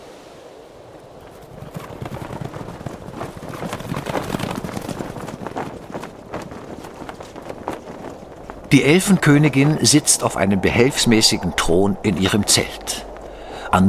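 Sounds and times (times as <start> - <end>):
horses' hooves clip-clopping: 1.2 - 10.3
speech: 8.7 - 13.1.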